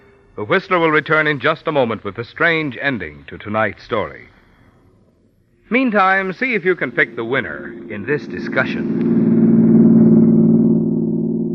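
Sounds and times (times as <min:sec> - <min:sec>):
speech: 0:00.4 - 0:04.4, 0:05.7 - 0:09.3
car motor running smoothly: 0:07.8 - 0:11.5.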